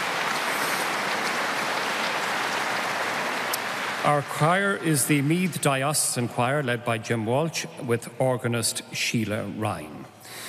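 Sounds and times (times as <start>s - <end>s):
congregation applause welcoming the Bishop of Meath to an afternoon church service: 0.0s - 5.8s
speech: 4.0s - 10.4s.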